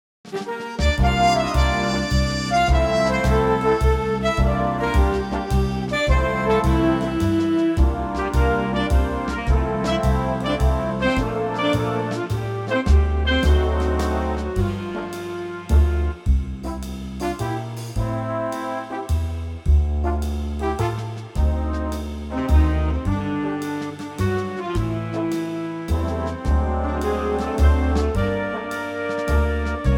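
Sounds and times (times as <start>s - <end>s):
big band: 0.3s - 29.9s.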